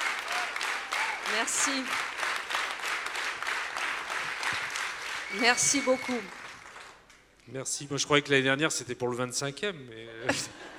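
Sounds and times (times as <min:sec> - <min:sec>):
audience applause: 0:00.0 - 0:07.0
speech: 0:01.3 - 0:02.2, 0:05.3 - 0:06.4, 0:07.5 - 0:10.7.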